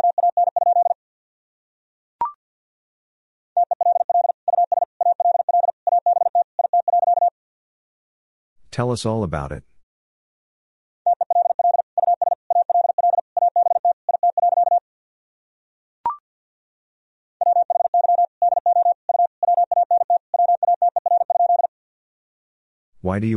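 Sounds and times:
Morse code tones at 50 words per minute: 0.0 - 1.0, 3.6 - 7.3, 11.1 - 14.8, 17.4 - 21.7
speech: 8.8 - 9.7, 23.1 - 23.3.

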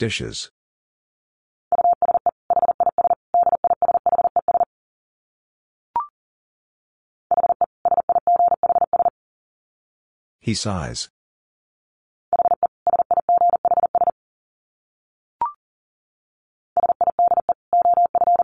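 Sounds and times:
speech: 0.0 - 0.6, 10.4 - 11.2
Morse code beeps at about 40 words per minute: 1.7 - 4.7, 7.3 - 9.1, 12.4 - 14.1, 16.8 - 18.4.

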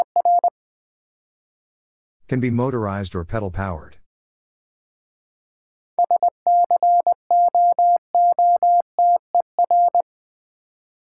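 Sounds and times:
speech: 2.3 - 4.0
Morse code tones spelling a word: 6.0 - 10.0.

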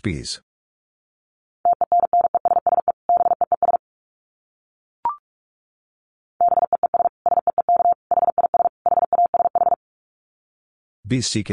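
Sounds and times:
Morse code tones: 1.7 - 3.8, 6.4 - 9.8.

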